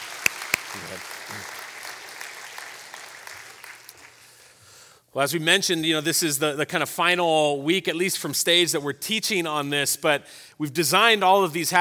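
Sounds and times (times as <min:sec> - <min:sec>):
audience applause: 0:00.0 - 0:04.4
speech: 0:00.7 - 0:01.7, 0:05.2 - 0:11.7.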